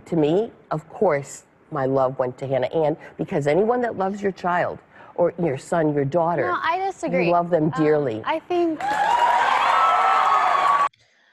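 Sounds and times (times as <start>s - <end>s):
speech: 0.1s - 9.2s
crowd cheering: 8.8s - 10.9s.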